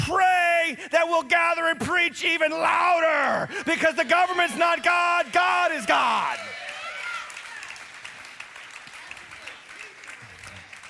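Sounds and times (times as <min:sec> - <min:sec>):
speech: 0:00.8 - 0:06.5
audience clapping: 0:03.9 - 0:10.8.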